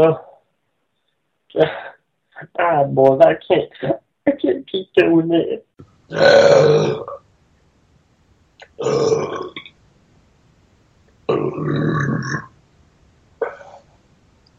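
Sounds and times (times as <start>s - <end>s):
speech: 0.0s - 0.2s, 1.5s - 7.2s, 8.8s - 9.6s, 11.4s - 12.5s
loud drawn-out gravelly burps: 6.1s - 7.2s, 8.7s - 9.7s, 11.3s - 12.5s, 13.4s - 13.8s.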